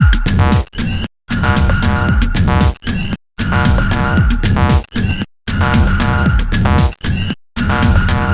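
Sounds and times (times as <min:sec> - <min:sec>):
115 BPM synth stab loop: 0:00.0 - 0:02.8, 0:03.4 - 0:04.9, 0:05.5 - 0:06.9, 0:07.6 - 0:08.3.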